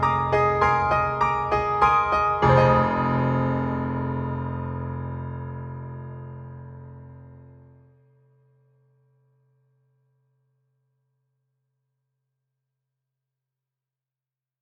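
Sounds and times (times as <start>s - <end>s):
piano playing: 0.0s - 7.8s.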